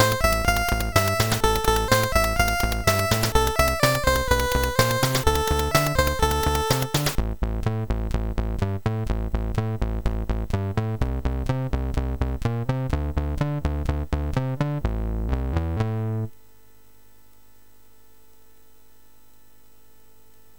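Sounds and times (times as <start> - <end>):
chiptune bass music on a MOS6581R3 SID chip: 0.0 - 16.3.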